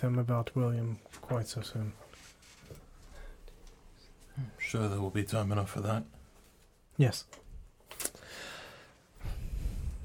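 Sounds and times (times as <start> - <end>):
speech: 0.0 - 2.1, 4.4 - 6.2, 7.0 - 7.4
person taking an audible breath: 3.0 - 3.6, 8.2 - 10.0.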